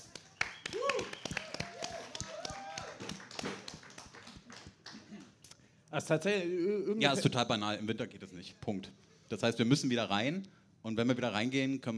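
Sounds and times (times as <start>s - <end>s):
audience applause: 0.0s - 5.4s
speech: 6.0s - 11.9s.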